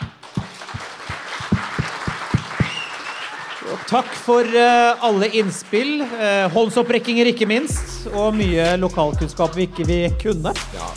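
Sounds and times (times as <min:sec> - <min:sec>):
audience applause: 0:00.0 - 0:07.8
speech: 0:03.7 - 0:10.9.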